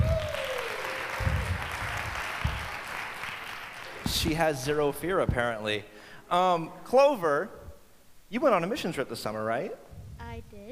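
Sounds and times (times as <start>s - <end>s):
audience applause: 0.0s - 4.4s
low thumps: 1.2s - 2.8s, 3.9s - 5.6s, 9.9s - 10.5s
speech: 4.1s - 7.6s, 8.3s - 9.8s.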